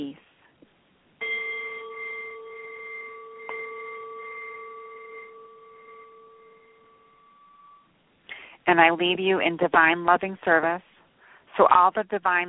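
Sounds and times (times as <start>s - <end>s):
meditation bells ringing: 1.2s - 7.9s
speech: 8.7s - 10.9s, 11.6s - 12.4s.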